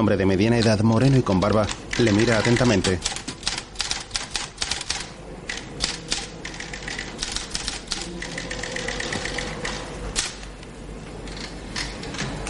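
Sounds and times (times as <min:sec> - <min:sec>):
speech: 0:00.0 - 0:03.2
typewriter typing as an official types up a document: 0:00.6 - 0:10.4.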